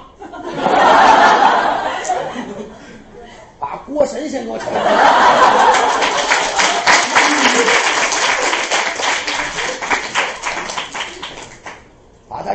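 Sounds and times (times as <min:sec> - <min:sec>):
laughter: 0:00.1 - 0:03.5, 0:04.6 - 0:11.4
speech: 0:04.0 - 0:06.0
audience applause: 0:05.0 - 0:11.8.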